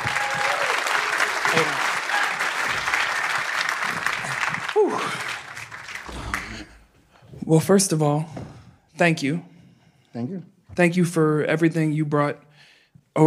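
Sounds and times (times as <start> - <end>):
audience applause welcoming a performer back to the stage: 0.0 - 6.9
speech: 7.5 - 8.4, 9.0 - 9.5, 10.1 - 12.5.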